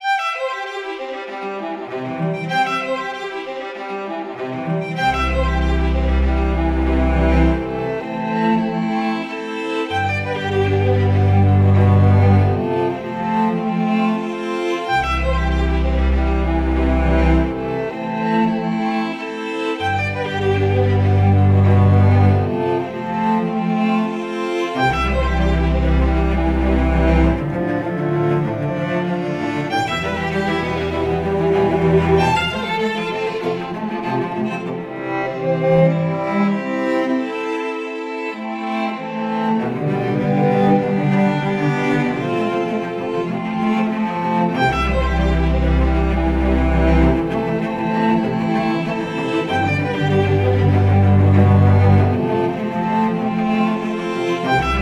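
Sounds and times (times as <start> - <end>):
string instruments playing: 0.0 - 54.8.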